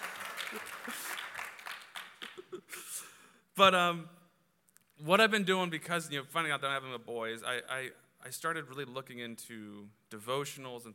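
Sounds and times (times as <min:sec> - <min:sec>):
audience applause: 0:00.0 - 0:02.6
speech: 0:03.6 - 0:04.2, 0:05.0 - 0:10.9.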